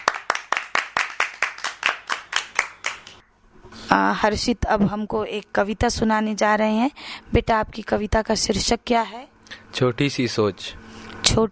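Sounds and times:
audience clapping: 0:00.0 - 0:03.2
speech: 0:03.9 - 0:11.5.

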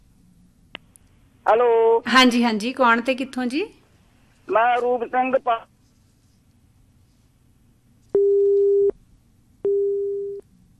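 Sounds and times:
speech: 0:01.5 - 0:03.8, 0:04.5 - 0:05.7
telephone busy signal after a dropped call: 0:08.2 - 0:08.9, 0:09.7 - 0:10.4.

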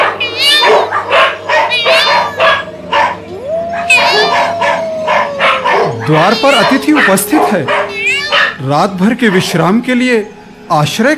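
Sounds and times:
howl-like cry: 0:00.0 - 0:08.6
dogs barking: 0:00.0 - 0:09.7
speech: 0:06.1 - 0:07.9, 0:08.6 - 0:11.1.

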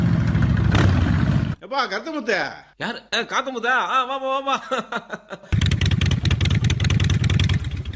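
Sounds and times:
motorcycle engine revving: 0:00.0 - 0:01.6, 0:05.6 - 0:07.9
speech: 0:01.7 - 0:05.9
laughter: 0:04.5 - 0:05.5.

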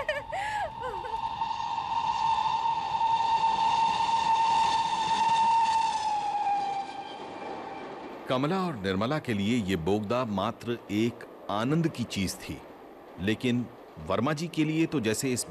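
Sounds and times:
train whistle as it enters a tunnel: 0:00.9 - 0:08.2
speech: 0:08.3 - 0:15.4.

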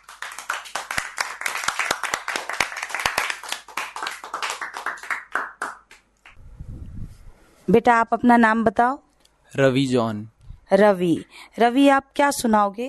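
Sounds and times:
children clapping: 0:00.0 - 0:06.4
speech: 0:07.7 - 0:12.8.

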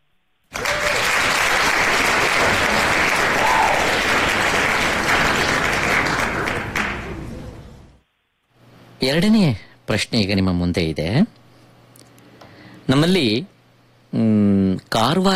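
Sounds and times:
quiz-show audience applause after a correct answer: 0:00.5 - 0:07.8
speech: 0:09.0 - 0:11.4, 0:12.9 - 0:13.5, 0:14.1 - 0:15.3.

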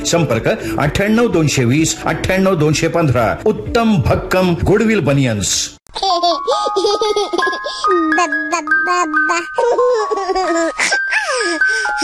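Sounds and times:
speech: 0:00.0 - 0:12.0
baby giggling and laughing in an IVF centre radio advert: 0:05.9 - 0:12.0
chiming, tinkling jingle melody: 0:06.8 - 0:12.0.

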